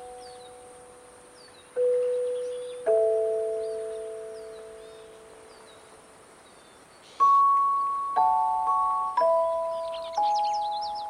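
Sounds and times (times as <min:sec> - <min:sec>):
wind chimes ringing at Patagonia Lake State Park: 0:00.0 - 0:05.9, 0:07.2 - 0:11.0
bird chirps: 0:00.0 - 0:11.0
high hiss: 0:00.0 - 0:11.0.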